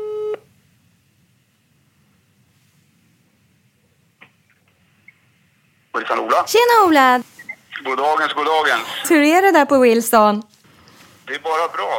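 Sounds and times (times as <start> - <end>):
electronic telephone call ringing tone: 0.0 - 0.4
speech: 6.0 - 10.5, 11.3 - 11.9.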